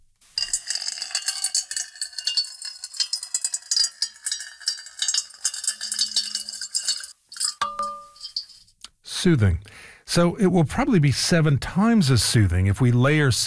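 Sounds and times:
water poured into a metal bowl: 0.4 - 8.6
speech: 9.2 - 13.4.

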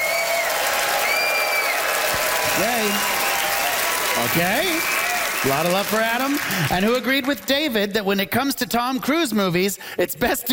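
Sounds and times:
audience applauding to vote at a live comedy debate show in Ottawa: 0.0 - 7.9
speech: 2.6 - 3.2, 4.2 - 10.5.

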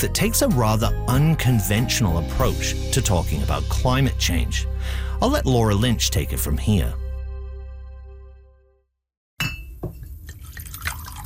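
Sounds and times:
speech: 0.0 - 7.0
whiskey pouring into a glass: 10.0 - 11.2.

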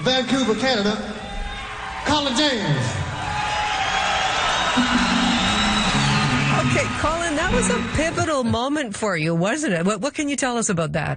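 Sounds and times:
audience cheering: 0.0 - 8.6
speech: 0.1 - 1.2, 2.0 - 3.0, 4.8 - 5.1, 7.0 - 11.1
audience applause: 1.5 - 8.5.

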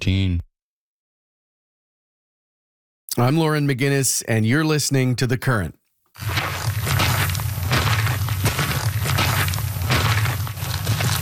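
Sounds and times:
speech: 0.1 - 0.5, 3.2 - 6.6
boots walking on a trail: 6.2 - 11.2.

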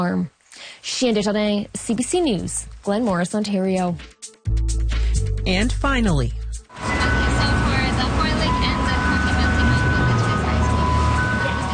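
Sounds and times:
speech: 0.0 - 4.8, 5.4 - 7.1
engine and traffic rumble: 6.7 - 11.7
ice cream truck chiming tune in Richmond, British Columbia: 6.7 - 11.7.

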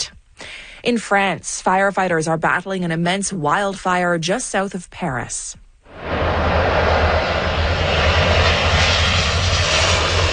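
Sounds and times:
speech: 0.8 - 5.6
water bomber aircraft loading up over the Seine River: 5.9 - 10.3.

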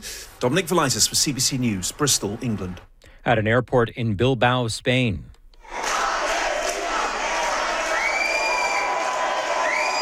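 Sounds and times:
speech: 0.0 - 5.3
pro-Palestinian activists chanting and cheering at Bilbao airport: 5.6 - 9.9.

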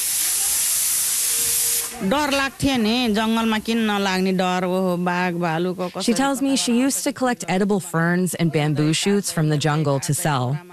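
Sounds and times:
pressure cooker whistling: 0.0 - 2.0
speech: 1.9 - 10.7.

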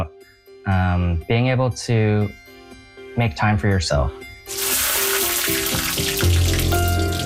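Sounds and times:
speech: 0.0 - 2.4, 3.2 - 4.9
butter and diced onion frying in a piping hot pan: 4.5 - 7.2.

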